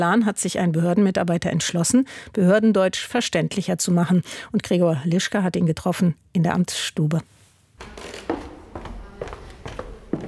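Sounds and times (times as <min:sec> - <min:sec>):
speech: 0:00.0 - 0:08.2
footsteps on creaking wooden floorboards: 0:07.8 - 0:10.2.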